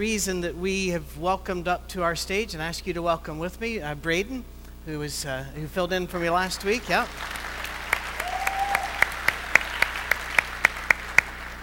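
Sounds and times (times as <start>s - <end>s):
speech: 0.0s - 7.4s
audience applause: 6.6s - 11.6s.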